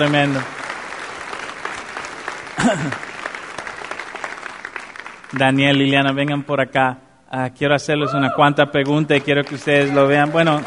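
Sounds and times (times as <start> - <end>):
speech: 0.0 - 0.6, 2.6 - 3.1, 5.3 - 10.6
audience applause: 0.0 - 6.0, 8.8 - 10.6.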